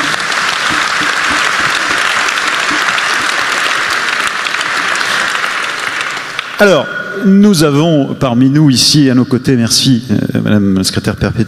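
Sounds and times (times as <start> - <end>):
audience applause: 0.0 - 6.8
speech: 6.6 - 11.4.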